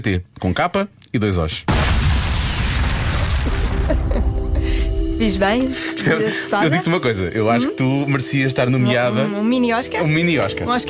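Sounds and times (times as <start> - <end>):
speech: 0.0 - 2.0, 3.9 - 10.8
explosion sound effect from a radio ad: 1.7 - 5.2.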